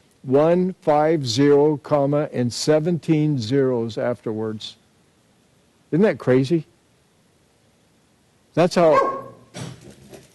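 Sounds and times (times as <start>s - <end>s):
speech: 0.2s - 4.8s, 5.9s - 6.7s, 8.6s - 9.1s
dog barking: 8.8s - 9.5s.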